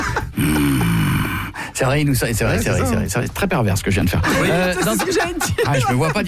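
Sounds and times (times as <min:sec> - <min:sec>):
laughter: 0:00.0 - 0:01.4, 0:04.1 - 0:06.2
heavy breathing close to the microphone: 0:00.0 - 0:01.8
speech: 0:01.8 - 0:06.2.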